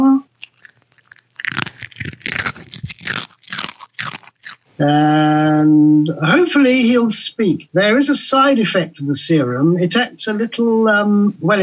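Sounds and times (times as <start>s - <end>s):
dog crunching a hard biscuit: 0.3s - 4.7s
speech: 4.8s - 11.6s.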